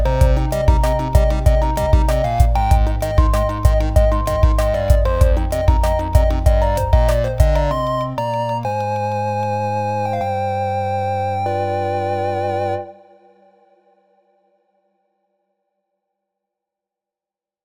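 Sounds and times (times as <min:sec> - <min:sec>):
chiptune music: 0:00.0 - 0:12.9.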